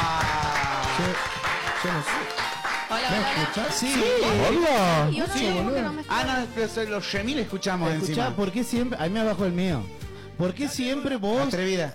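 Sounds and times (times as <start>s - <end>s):
applause: 0.0s - 5.4s
speech: 1.0s - 11.9s.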